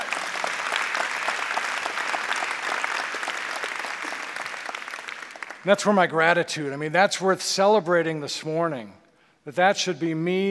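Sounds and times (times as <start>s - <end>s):
audience applause: 0.0s - 5.7s
speech: 5.6s - 10.4s.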